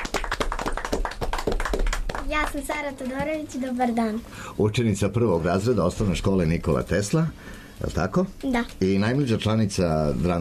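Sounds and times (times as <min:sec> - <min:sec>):
small group clapping at a school drama club introduction: 0:00.0 - 0:03.3
speech: 0:02.3 - 0:10.3.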